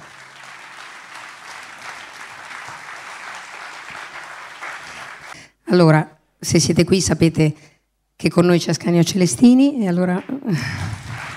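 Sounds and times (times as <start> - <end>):
audience applause: 0.0 - 5.4, 10.5 - 11.3
speech: 5.7 - 10.9.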